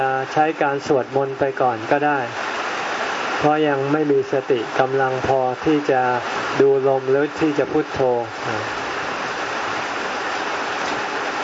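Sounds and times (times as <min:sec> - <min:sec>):
speech: 0:00.0 - 0:02.6, 0:03.4 - 0:08.8
heavy rain falling: 0:00.0 - 0:11.4.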